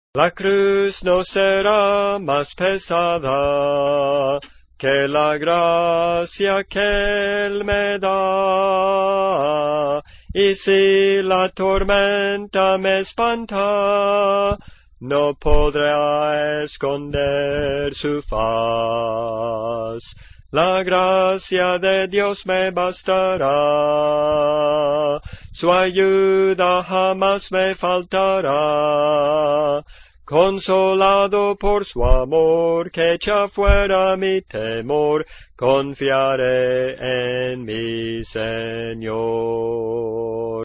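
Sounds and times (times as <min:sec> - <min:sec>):
contralto singing spirituals: 0:00.2 - 0:40.6.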